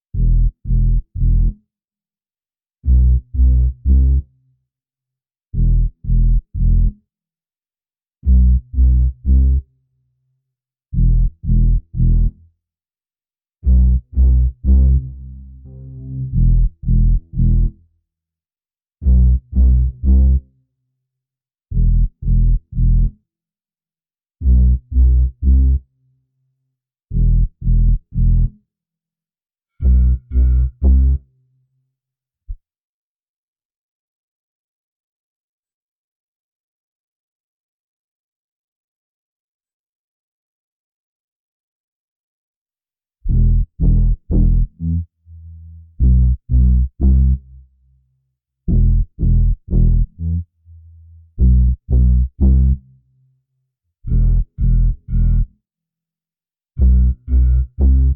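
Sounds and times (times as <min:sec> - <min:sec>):
bass: 0:00.0 - 0:01.7, 0:02.8 - 0:04.4, 0:05.5 - 0:07.1, 0:08.2 - 0:09.8, 0:10.9 - 0:12.5, 0:13.6 - 0:18.0, 0:19.0 - 0:20.6, 0:21.7 - 0:23.2, 0:24.4 - 0:26.0, 0:27.1 - 0:28.7, 0:29.8 - 0:31.3, 0:43.2 - 0:48.0, 0:48.7 - 0:53.2, 0:54.0 - 0:55.6, 0:56.8 - 0:58.1.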